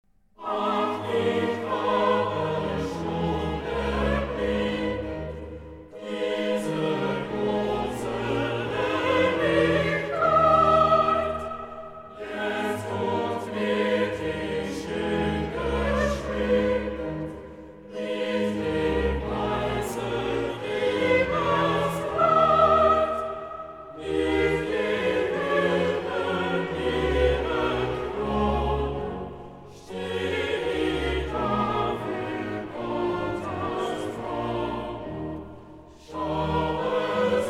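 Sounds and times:
choir singing: 0.4s - 37.4s.

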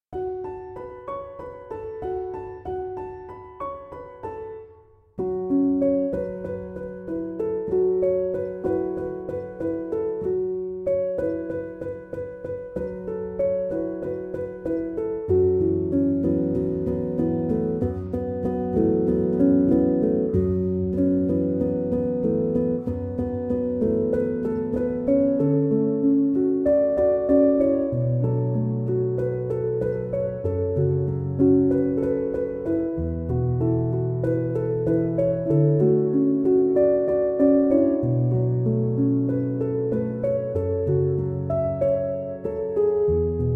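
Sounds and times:
piano instrumental: 0.0s - 43.5s.

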